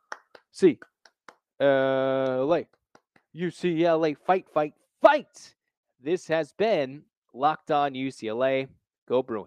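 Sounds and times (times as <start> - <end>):
rhythmic hand claps: 0.0 - 3.3
speech: 0.6 - 0.9, 1.6 - 2.8, 3.4 - 9.4.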